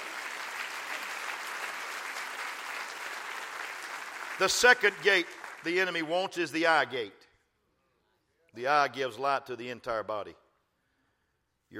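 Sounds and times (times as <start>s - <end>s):
audience clapping hands: 0.0s - 6.8s
speech: 4.4s - 7.2s, 8.5s - 10.4s.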